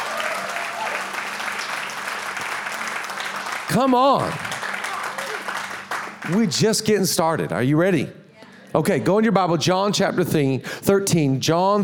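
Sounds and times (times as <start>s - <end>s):
cheers and shouts: 0.0s - 1.7s, 3.8s - 5.6s
audience clapping loudly: 0.0s - 6.9s
speech: 3.7s - 4.4s, 6.2s - 11.8s.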